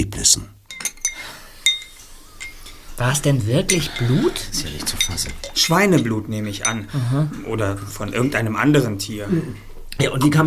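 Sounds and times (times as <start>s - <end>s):
speech: 0.1s - 0.6s, 3.0s - 10.4s
dishes and cups clinking while tea is prepared: 0.6s - 10.4s.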